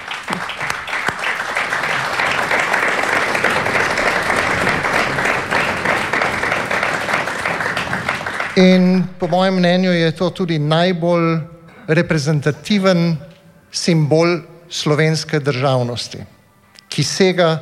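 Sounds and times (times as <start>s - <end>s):
crowd applauding: 0.0s - 10.3s
speech: 8.6s - 16.4s, 17.0s - 17.6s.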